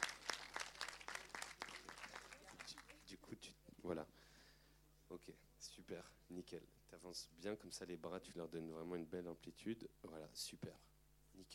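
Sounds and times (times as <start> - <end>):
audience applause: 0.0 - 3.0
speech: 3.3 - 4.2, 5.1 - 11.5.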